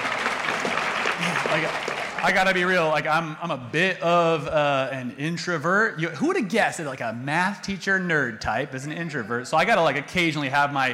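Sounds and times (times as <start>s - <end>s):
applause: 0.0s - 2.8s
speech: 1.2s - 10.9s.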